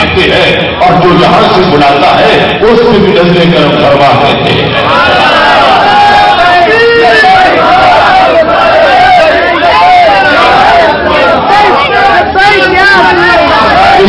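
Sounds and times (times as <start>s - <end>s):
speech: 0.1s - 5.1s
large crowd chanting a religious slogan at a sermon gathering: 4.6s - 14.0s.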